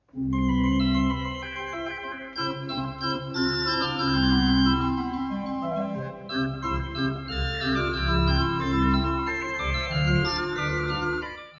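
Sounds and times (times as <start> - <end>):
organ: 0.1 - 11.5.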